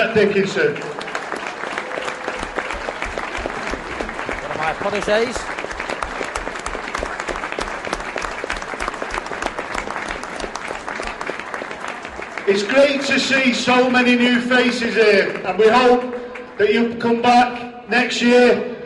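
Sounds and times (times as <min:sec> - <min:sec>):
speech: 0:00.0 - 0:01.0, 0:04.7 - 0:05.5, 0:12.5 - 0:18.7
audience applause: 0:00.0 - 0:16.6.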